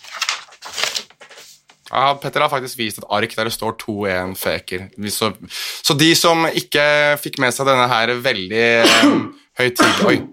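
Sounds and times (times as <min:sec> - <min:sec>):
speech: 0:01.9 - 0:10.3
loud sneeze: 0:08.8 - 0:10.2.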